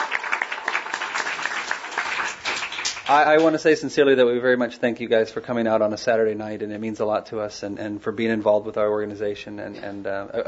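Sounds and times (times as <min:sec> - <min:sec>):
audience applause: 0:00.0 - 0:03.5
speech: 0:03.1 - 0:10.4.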